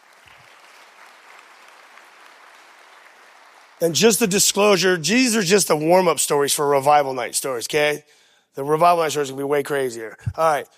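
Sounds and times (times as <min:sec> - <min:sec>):
audience clapping: 0:00.0 - 0:05.0
speech: 0:03.8 - 0:10.7.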